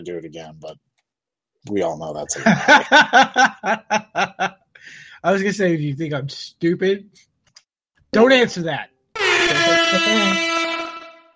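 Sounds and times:
speech: 0:00.0 - 0:00.9, 0:01.6 - 0:07.3, 0:08.1 - 0:08.9, 0:09.9 - 0:10.5
laughter: 0:02.3 - 0:04.6
air horn blast: 0:09.2 - 0:11.3.

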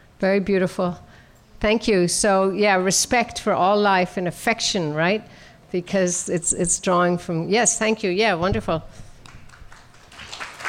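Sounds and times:
speech: 0:00.2 - 0:09.0
audience clapping: 0:09.2 - 0:10.6.

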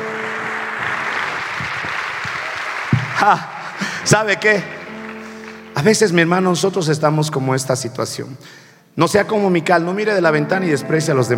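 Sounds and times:
audience applause: 0:00.0 - 0:05.8
speech: 0:03.2 - 0:04.8, 0:05.8 - 0:11.3.

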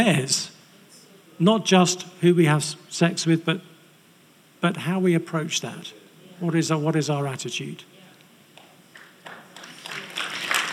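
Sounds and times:
speech: 0:00.0 - 0:00.6, 0:01.4 - 0:03.7, 0:04.6 - 0:07.9
audience applause: 0:08.9 - 0:10.7.

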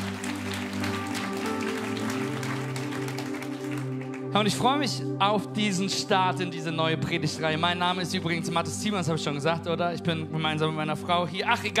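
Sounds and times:
audience applause: 0:00.0 - 0:04.4
speech: 0:04.4 - 0:11.7.

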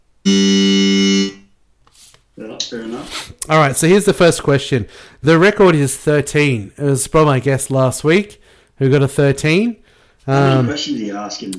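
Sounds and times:
speech: 0:00.2 - 0:00.5, 0:02.7 - 0:11.5
wrong-answer buzzer: 0:00.2 - 0:01.5.

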